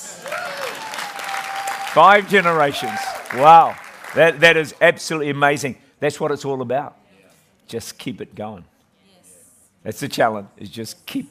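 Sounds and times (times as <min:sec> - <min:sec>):
audience applause: 0:00.0 - 0:04.7
speech: 0:02.0 - 0:07.0, 0:07.7 - 0:08.7, 0:09.8 - 0:11.2.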